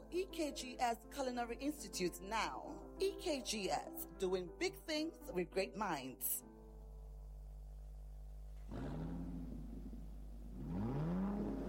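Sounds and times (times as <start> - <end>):
speech: 0.1 - 6.5
car engine revving: 8.6 - 11.6.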